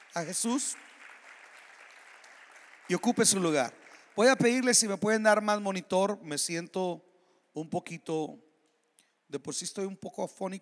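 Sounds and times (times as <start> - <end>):
audience applause: 0.0 - 4.6
speech: 0.1 - 0.9, 2.9 - 8.4, 9.3 - 10.5.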